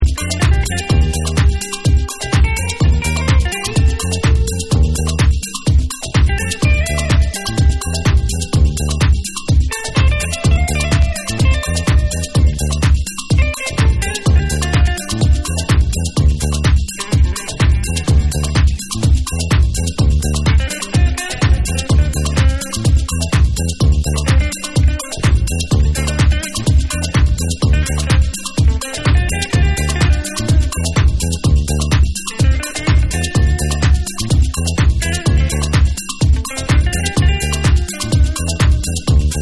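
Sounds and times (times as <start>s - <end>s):
hard but soulful music mix: 0.0s - 39.4s.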